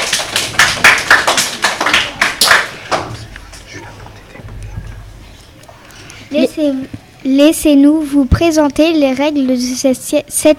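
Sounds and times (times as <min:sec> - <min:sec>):
audience applause: 0:00.0 - 0:03.2
speech: 0:06.6 - 0:10.5.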